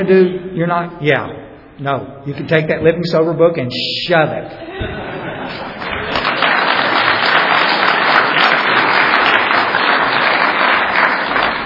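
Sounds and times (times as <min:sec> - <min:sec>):
speech: 0:00.0 - 0:05.7
laughter: 0:04.6 - 0:07.2
crowd applauding: 0:05.2 - 0:11.6.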